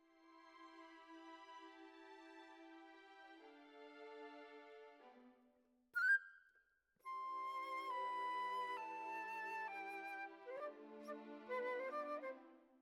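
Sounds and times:
flute: 0:06.0 - 0:12.7.

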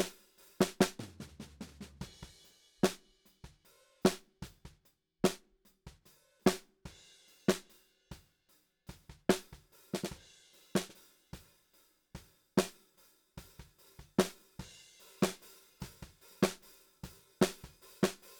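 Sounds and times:
snare drum: 0:00.0 - 0:06.8, 0:07.5 - 0:07.7, 0:08.9 - 0:10.2, 0:10.8 - 0:11.0, 0:13.6 - 0:16.6, 0:17.4 - 0:18.3.

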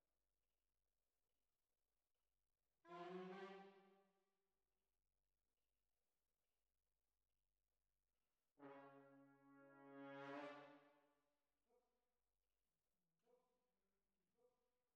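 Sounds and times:
tuba: 0:08.6 - 0:10.9.

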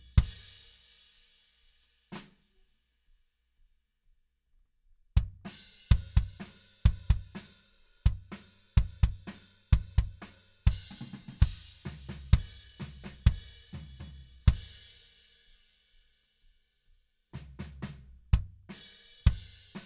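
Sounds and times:
kick drum: 0:05.2 - 0:07.4, 0:08.1 - 0:12.6, 0:18.3 - 0:18.7.

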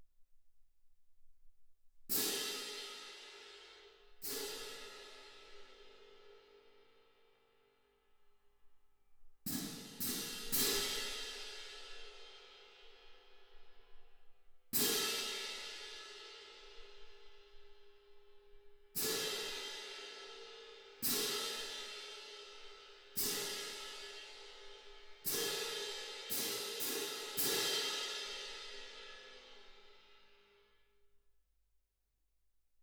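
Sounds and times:
percussion: 0:02.1 - 0:07.2, 0:09.4 - 0:30.6.

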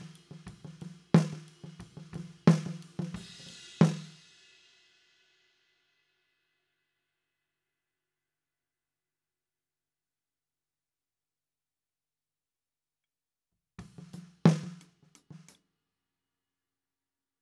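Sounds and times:
snare drum: 0:00.0 - 0:04.2, 0:13.8 - 0:15.6.

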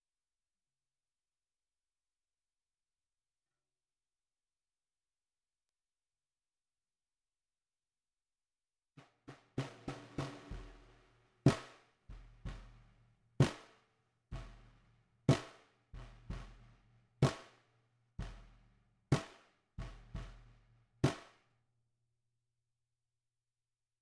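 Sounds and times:
snare drum recorded from the bottom: 0:09.0 - 0:13.8, 0:14.4 - 0:17.6, 0:18.2 - 0:21.4.

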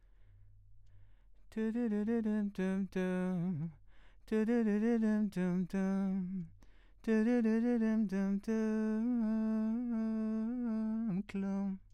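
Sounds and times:
vocals: 0:00.9 - 0:11.9.

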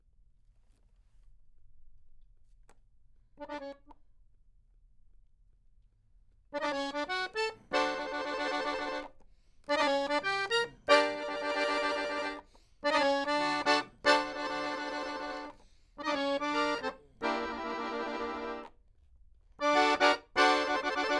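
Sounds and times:
accordion: 0:03.4 - 0:03.9, 0:06.6 - 0:18.8, 0:19.6 - 0:21.1.

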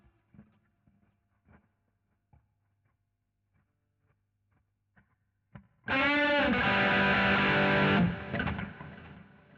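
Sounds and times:
guitar solo: 0:05.9 - 0:09.1.

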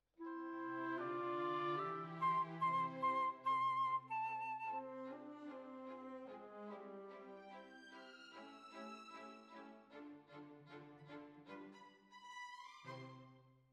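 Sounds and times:
flute: 0:00.2 - 0:08.5.

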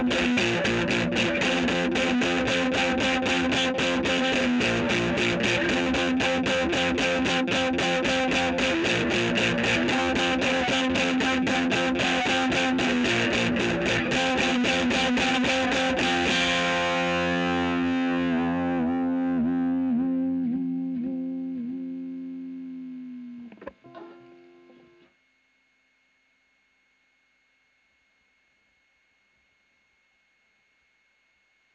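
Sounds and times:
electric guitar recorded with a Royer microphone: 0:00.0 - 0:25.1.

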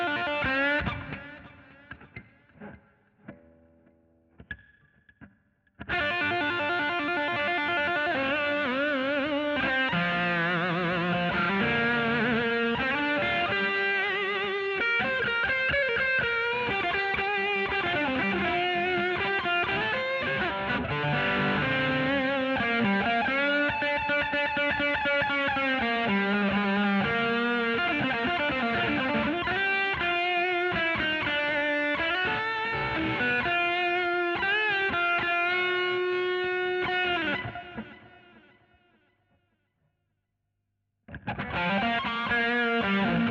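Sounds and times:
guitar solo: 0:00.0 - 0:39.1, 0:41.1 - 0:43.2.

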